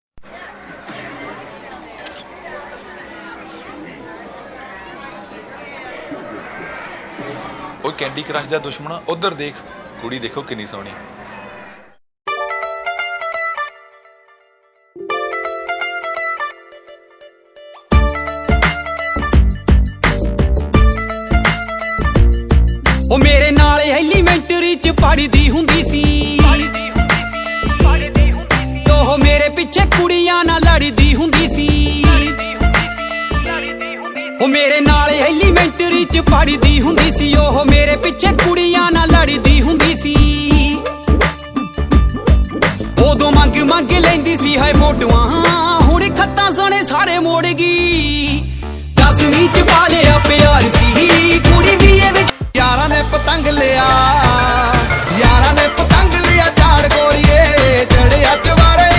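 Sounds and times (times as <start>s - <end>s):
Punjabi songs: 15.0s - 58.9s.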